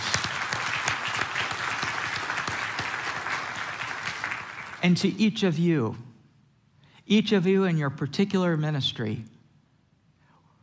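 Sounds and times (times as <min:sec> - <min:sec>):
audience applause: 0:00.0 - 0:05.0
speech: 0:04.8 - 0:06.1, 0:07.1 - 0:09.3.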